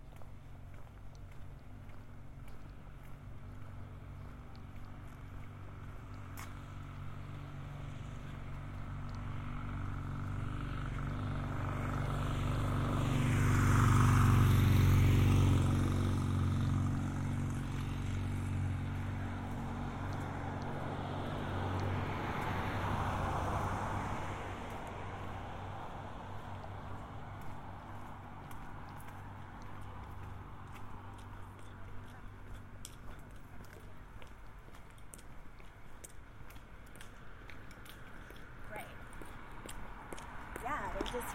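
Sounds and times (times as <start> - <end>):
traffic hum in south Boulder, Colorado: 0.0 - 41.3
vehicle passing: 0.1 - 41.3.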